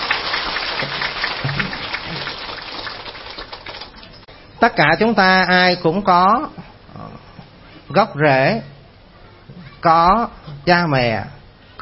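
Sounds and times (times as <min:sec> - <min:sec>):
audience applause: 0:00.0 - 0:04.1
speech: 0:04.6 - 0:06.6, 0:07.9 - 0:08.7, 0:09.8 - 0:11.8.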